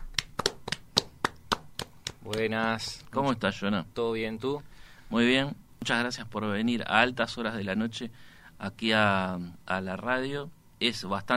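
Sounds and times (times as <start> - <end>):
applause: 0.0 - 2.8
speech: 2.2 - 11.3.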